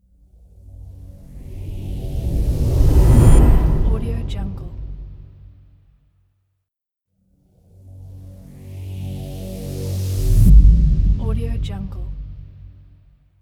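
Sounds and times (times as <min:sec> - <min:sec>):
suspenseful transition: 0:00.2 - 0:05.8, 0:07.9 - 0:13.0.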